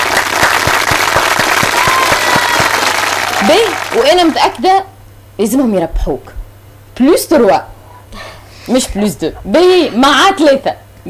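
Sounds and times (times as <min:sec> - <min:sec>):
audience clapping at a gathering: 0:00.0 - 0:04.6
speech: 0:03.4 - 0:06.4, 0:07.0 - 0:07.7, 0:08.7 - 0:11.0.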